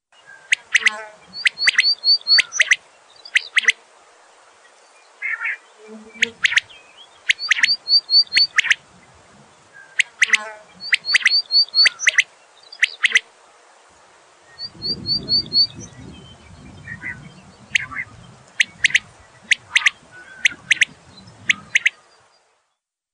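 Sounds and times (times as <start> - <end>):
common quail calling: 0.3 - 3.8, 5.2 - 13.3, 14.6 - 15.9, 16.8 - 22.0.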